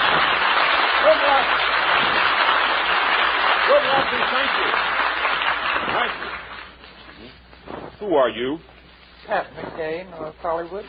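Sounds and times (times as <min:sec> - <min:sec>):
audience applause welcoming people in uniform at a live show: 0:00.0 - 0:06.8
speech: 0:03.8 - 0:05.0, 0:08.0 - 0:08.7, 0:09.3 - 0:10.8.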